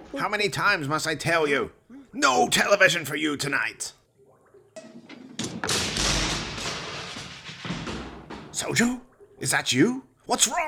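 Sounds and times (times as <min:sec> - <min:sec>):
speech: 0:00.1 - 0:04.0, 0:08.6 - 0:10.6
metal cage bars rattling and clanging: 0:05.1 - 0:08.6
heavy thuds: 0:05.1 - 0:09.0.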